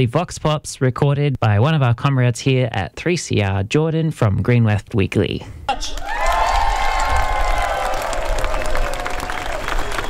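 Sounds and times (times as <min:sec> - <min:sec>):
speech: 0:00.0 - 0:06.1
large outdoor rally crowd cheering and clapping: 0:05.9 - 0:10.0
whoops and shouts: 0:05.9 - 0:10.0.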